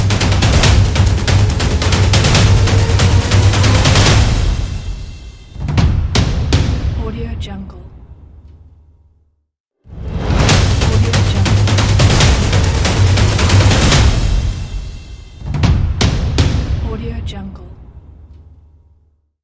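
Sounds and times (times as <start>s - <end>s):
action drums for a trailer ident: 0.0s - 7.3s, 9.9s - 17.2s.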